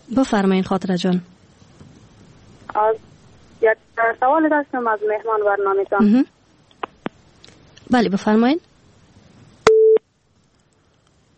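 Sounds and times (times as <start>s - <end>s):
faint low noise: 0.0s - 11.3s
speech: 0.1s - 1.3s, 2.8s - 6.4s, 7.9s - 8.7s
telephone busy tone beep after a caller's line drops: 9.7s - 10.0s.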